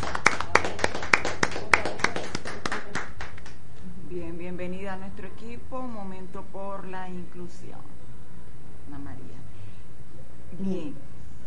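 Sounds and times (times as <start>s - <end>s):
applause: 0.0s - 3.6s
speech: 5.0s - 8.0s, 8.9s - 9.5s, 10.5s - 11.1s.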